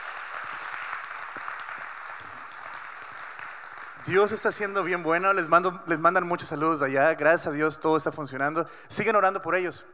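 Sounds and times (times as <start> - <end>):
crowd applause: 0.0 - 4.8
speech: 4.0 - 9.9.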